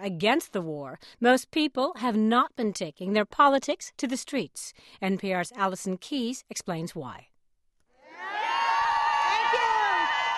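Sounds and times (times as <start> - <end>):
speech: 0.0 - 7.3
high whoops: 8.0 - 10.3
large crowd cheering and shouting at anti-war protest rally: 8.0 - 10.3.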